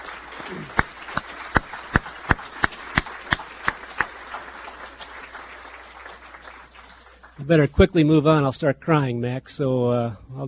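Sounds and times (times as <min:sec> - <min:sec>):
sharp claps in audience round of applause: 0:00.0 - 0:07.4
speech: 0:07.4 - 0:10.4.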